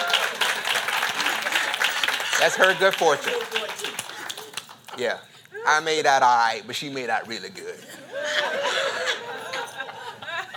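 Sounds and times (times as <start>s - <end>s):
audience applause: 0.0s - 5.0s
speech: 2.4s - 3.8s, 5.0s - 7.7s
laughter: 7.8s - 10.5s.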